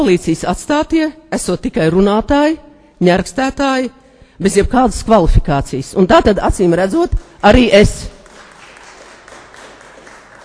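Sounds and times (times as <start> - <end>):
speech: 0.0 - 8.2
audience applause during a speech: 8.2 - 10.4.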